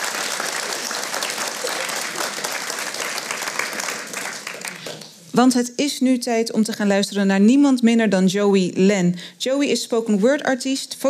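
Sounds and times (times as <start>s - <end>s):
audience applause: 0.0s - 5.1s
speech: 5.4s - 11.0s.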